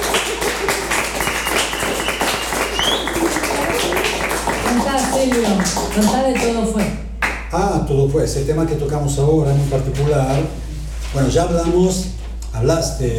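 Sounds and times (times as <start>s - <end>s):
audience applause: 0.0s - 6.6s
speech: 5.3s - 13.1s.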